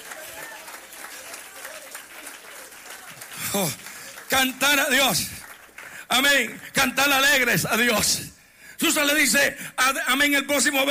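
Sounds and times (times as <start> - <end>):
people applauding: 0.0 - 7.4
speech: 3.5 - 5.4, 6.1 - 10.8.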